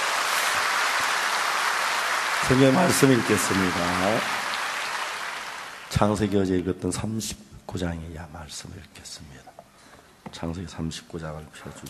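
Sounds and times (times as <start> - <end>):
church congregation applause during a service: 0.0 - 6.3
speech: 2.4 - 4.4, 6.0 - 9.6, 10.2 - 11.8.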